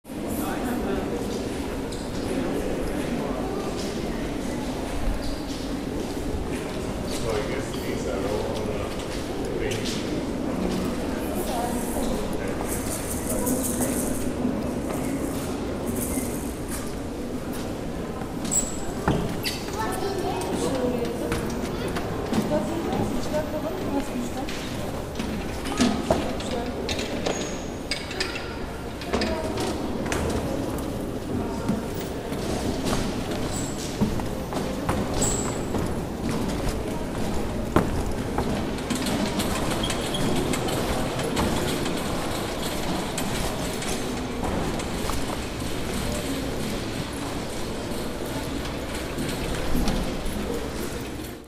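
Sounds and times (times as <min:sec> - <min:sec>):
reverberant voices in a museum: 0:00.1 - 0:51.4.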